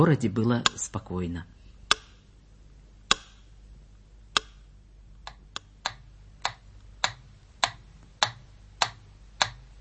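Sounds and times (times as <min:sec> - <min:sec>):
slow steady metronome ticking: 0:00.0 - 0:01.0, 0:01.8 - 0:02.3, 0:03.0 - 0:03.5, 0:04.3 - 0:09.7
speech: 0:00.0 - 0:01.6.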